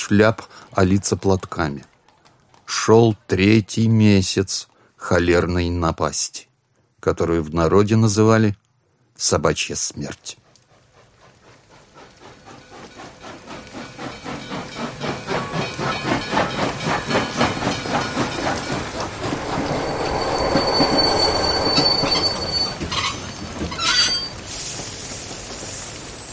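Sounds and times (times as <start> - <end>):
speech: 0.1 - 1.9, 2.7 - 8.6, 9.2 - 10.4
train arriving: 11.1 - 26.3
train wheels squealing: 12.4 - 25.2.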